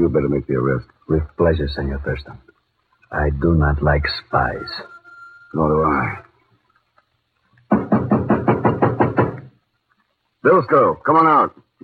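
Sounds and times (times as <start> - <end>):
speech: 0.1 - 2.5, 3.1 - 4.9, 5.5 - 6.3, 10.4 - 11.8
knocking on a door: 7.7 - 9.5.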